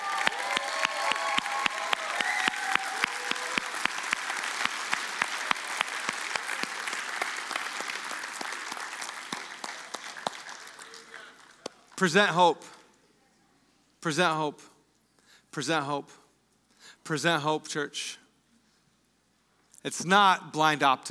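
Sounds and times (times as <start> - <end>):
audience clapping: 0.0 - 12.2
speech: 12.0 - 12.8, 14.0 - 14.7, 15.5 - 16.2, 16.8 - 18.2, 19.8 - 21.0.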